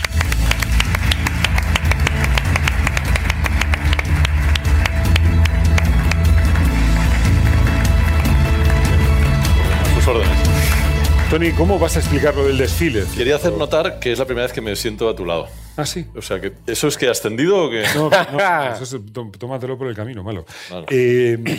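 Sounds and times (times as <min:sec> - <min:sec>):
loud audience applause: 0:00.0 - 0:12.4
speech: 0:11.3 - 0:21.5
laughter: 0:17.8 - 0:18.7.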